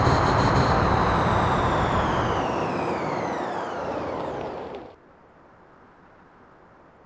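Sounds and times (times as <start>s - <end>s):
vehicles throttling off: 0.0s - 5.0s.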